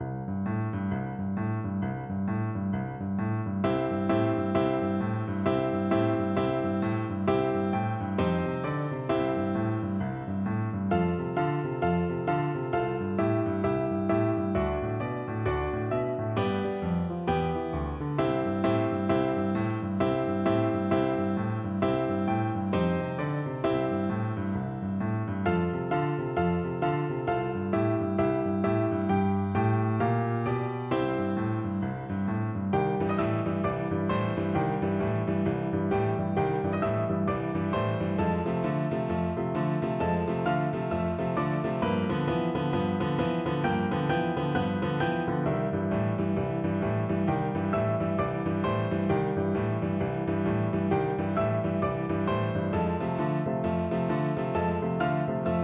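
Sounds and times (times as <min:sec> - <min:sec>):
boogie piano duet: 0:00.0 - 0:55.6.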